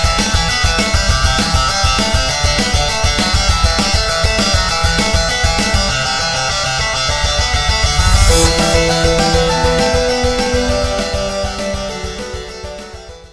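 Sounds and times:
guitar in game music: 0:00.0 - 0:13.3
piano in game music: 0:07.7 - 0:13.3.

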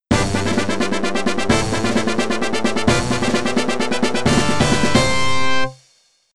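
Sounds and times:
boss stage clear music: 0:00.1 - 0:05.8.

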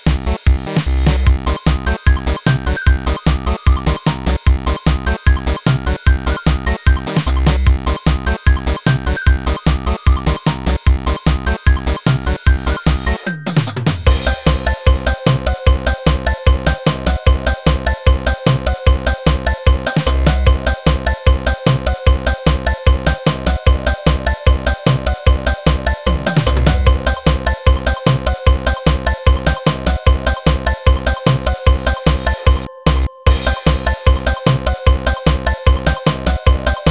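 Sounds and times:
instrumental music: 0:00.2 - 0:36.8.

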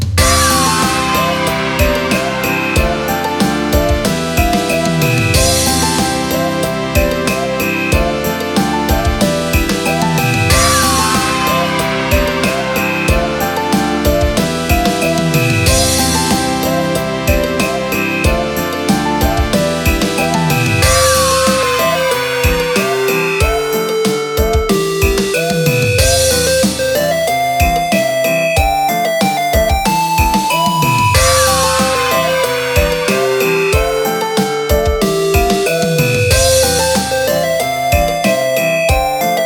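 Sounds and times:
pause menu music: 0:00.2 - 0:39.4.

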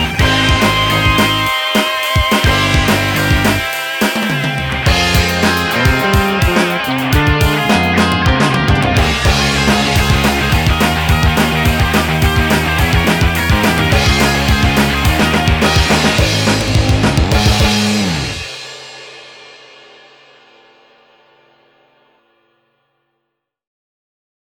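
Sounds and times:
instrumental backing track without vocals: 0:00.0 - 0:18.6.

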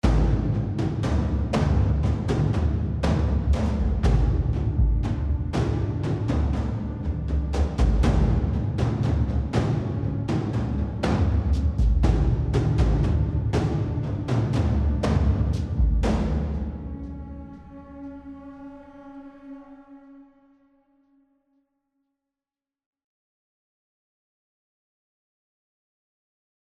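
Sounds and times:
tension music: 0:00.0 - 0:20.4.

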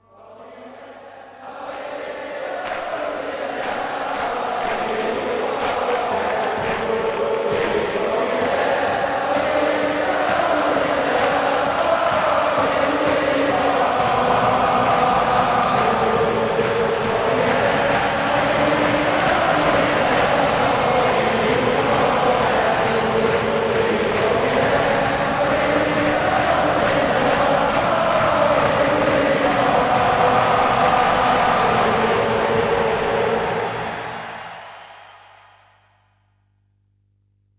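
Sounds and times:
European chants: 0:00.0 - 0:36.0.

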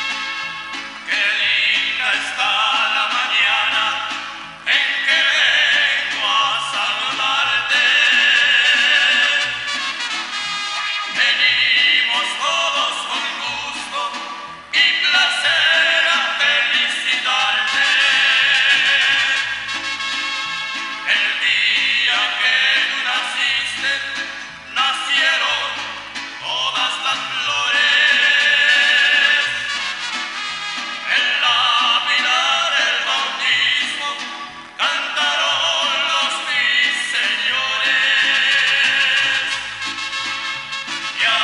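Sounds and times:
full mix song with vocals: 0:00.1 - 0:41.4.

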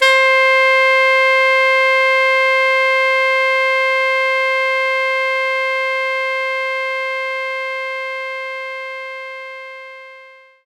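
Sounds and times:
alto saxophone note C5: 0:00.0 - 0:10.6.

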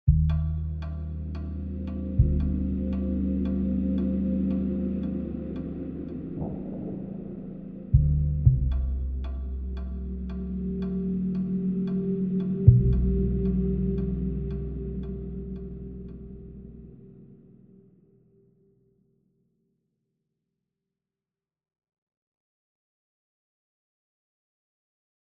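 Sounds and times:
tension music: 0:00.1 - 0:17.8.

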